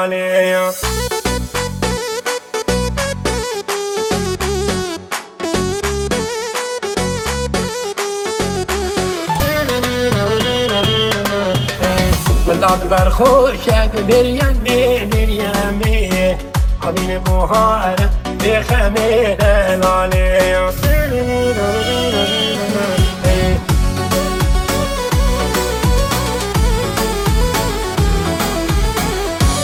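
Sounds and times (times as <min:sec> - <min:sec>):
Kurdish remixed dance music: 0:00.1 - 0:29.6.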